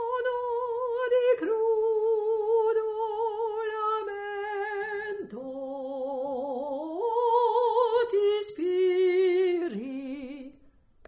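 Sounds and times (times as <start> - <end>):
soprano singing: 0.0 - 11.0.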